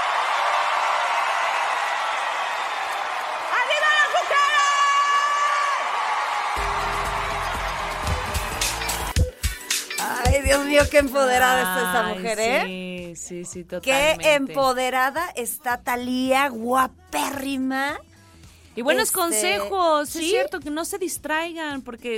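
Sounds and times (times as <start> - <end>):
audience applause: 0.0 - 9.2
crowd cheering: 0.0 - 9.3
speech: 10.5 - 18.1, 18.8 - 22.1.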